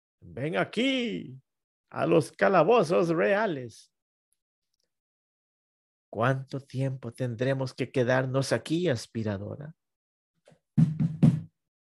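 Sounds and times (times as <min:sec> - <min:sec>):
speech: 0:00.4 - 0:03.9, 0:06.1 - 0:09.8
knocking on a door: 0:10.8 - 0:11.5.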